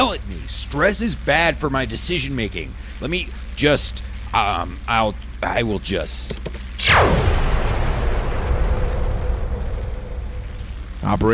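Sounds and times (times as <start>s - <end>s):
speech: 0.2s - 7.2s, 11.0s - 11.3s
energy cannon blast: 6.8s - 11.0s
roaring rumble: 6.8s - 11.3s.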